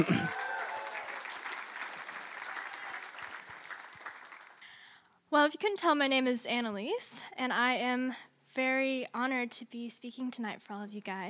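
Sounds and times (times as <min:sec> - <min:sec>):
speech: 0:00.0 - 0:00.4, 0:05.4 - 0:11.2
audience applause: 0:00.0 - 0:04.7.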